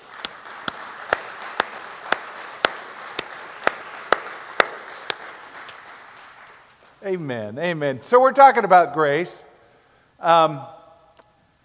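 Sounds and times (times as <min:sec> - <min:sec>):
audience round of applause: 0:00.0 - 0:07.0
speech: 0:07.0 - 0:09.5, 0:10.2 - 0:10.8.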